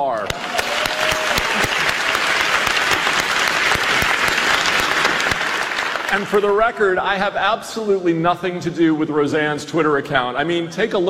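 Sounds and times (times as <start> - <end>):
audience applause: 0.0 - 7.0
speech: 6.1 - 11.0.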